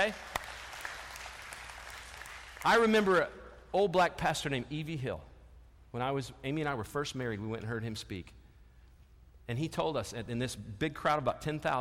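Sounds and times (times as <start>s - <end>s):
speech: 0.0s - 0.3s, 2.6s - 5.3s, 5.9s - 8.4s, 9.5s - 11.8s
audience clapping: 0.0s - 3.2s.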